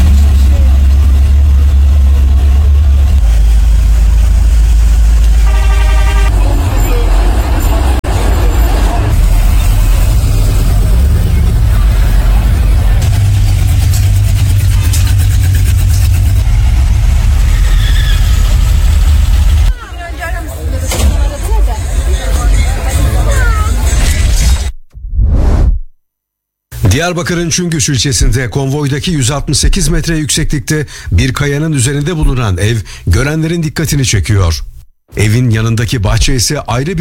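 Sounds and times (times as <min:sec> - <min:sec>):
crowd babble and chatter at a car show: 0:00.0 - 0:15.8, 0:19.7 - 0:24.6
classic car engine idling at a car show: 0:00.0 - 0:19.7
speech: 0:27.0 - 0:36.9.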